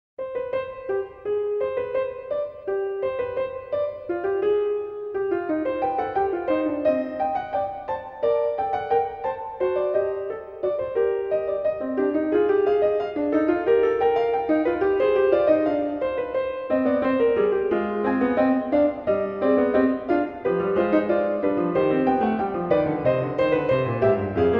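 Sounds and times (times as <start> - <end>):
keyboard fugue: 0.2 - 24.5.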